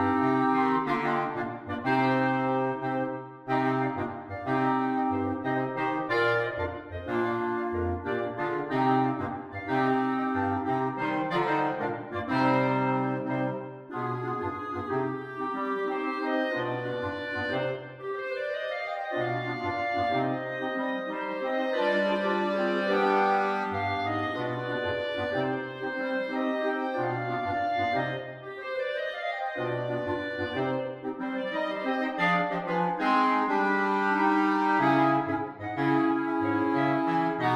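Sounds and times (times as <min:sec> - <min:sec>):
clarinet choir: 0:00.0 - 0:37.5.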